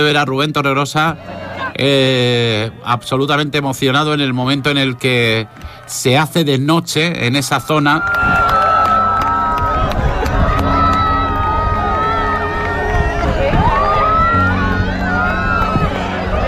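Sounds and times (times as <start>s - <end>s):
speech: 0.0s - 8.4s
crowd shouting at total eclipse: 1.2s - 2.8s, 3.8s - 6.2s, 8.0s - 16.4s
crowd applauding at total eclipse: 7.6s - 16.4s.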